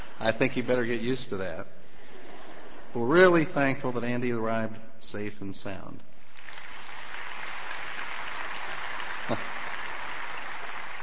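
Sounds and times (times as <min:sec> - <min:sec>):
speech: 0:00.2 - 0:01.8, 0:02.9 - 0:06.1, 0:09.3 - 0:09.6
audience clapping: 0:06.2 - 0:11.0.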